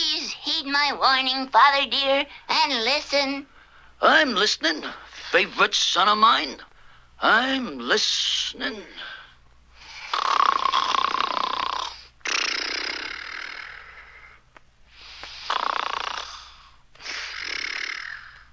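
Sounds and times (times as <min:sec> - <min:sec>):
speech: 0:00.6 - 0:09.1
loud raspy snoring: 0:09.8 - 0:14.2, 0:15.4 - 0:18.5.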